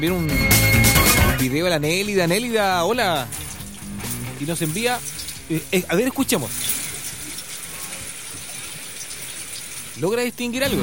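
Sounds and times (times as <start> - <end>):
speech: 0.0 - 0.6, 1.4 - 3.4, 4.4 - 6.8, 10.0 - 10.8
rain: 3.2 - 10.3.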